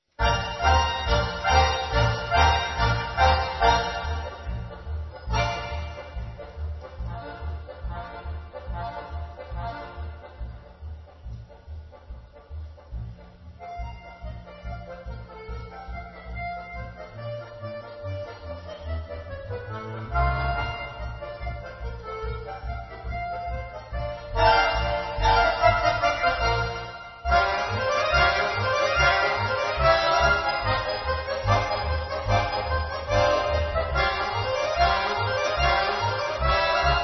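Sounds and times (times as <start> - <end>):
ensemble playing a march in B flat: 0.2 - 37.0.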